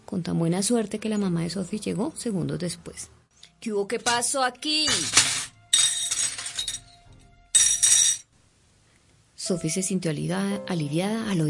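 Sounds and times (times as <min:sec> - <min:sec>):
speech: 0:00.1 - 0:05.3, 0:09.5 - 0:11.4
dishes shattering: 0:04.9 - 0:07.0, 0:07.6 - 0:08.3.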